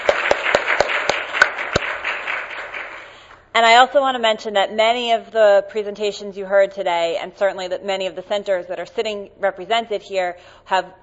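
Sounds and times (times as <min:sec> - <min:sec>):
round of applause from audience: 0:00.0 - 0:03.2
speech: 0:03.6 - 0:11.0.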